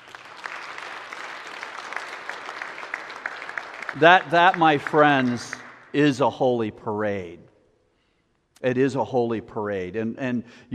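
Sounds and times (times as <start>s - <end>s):
crowd applause: 0.0s - 5.9s
speech: 3.9s - 7.4s, 8.6s - 10.7s.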